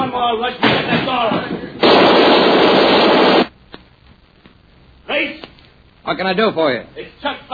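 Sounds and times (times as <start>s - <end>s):
speech: 0.2s - 1.4s, 6.1s - 7.4s
Tommy gun machine gun fire: 1.8s - 3.5s.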